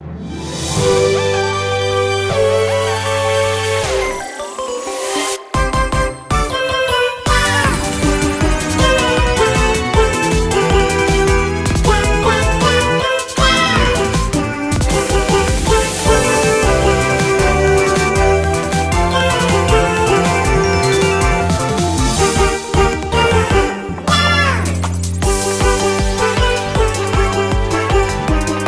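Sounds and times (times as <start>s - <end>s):
background music: 0.0s - 28.6s.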